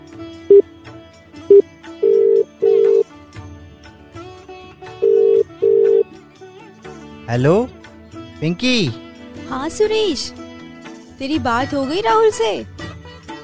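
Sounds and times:
faint music: 0:00.0 - 0:13.4
phone dialing beeps: 0:01.5 - 0:03.0, 0:05.0 - 0:06.0
telephone ringback tone: 0:01.5 - 0:03.1, 0:05.0 - 0:06.1
speech: 0:07.3 - 0:07.8, 0:08.4 - 0:10.4, 0:11.2 - 0:12.7.

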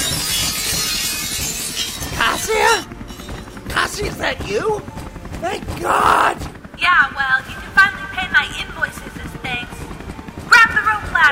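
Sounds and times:
skylight glass breaking: 0:00.0 - 0:02.5
speech: 0:04.0 - 0:09.6.

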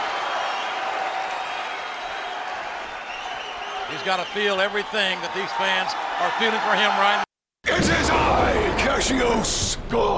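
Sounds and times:
large crowd clapping: 0:00.0 - 0:07.0
large crowd cheering and roaring: 0:00.0 - 0:10.1
speech: 0:03.9 - 0:07.3, 0:08.0 - 0:10.1.

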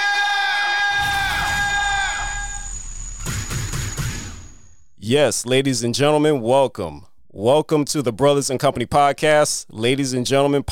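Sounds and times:
crowd cheering and screaming to open a show: 0:00.0 - 0:03.0
sharp noisy bursts: 0:00.9 - 0:04.9
speech: 0:05.1 - 0:10.6.

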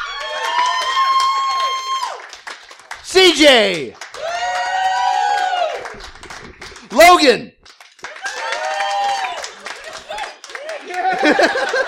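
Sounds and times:
audience cheering: 0:00.0 - 0:02.5, 0:03.1 - 0:07.4, 0:08.0 - 0:11.8
audience applause: 0:00.0 - 0:11.8
speech: 0:03.1 - 0:04.0, 0:06.9 - 0:07.6, 0:11.2 - 0:11.8
laughter: 0:09.6 - 0:11.8.

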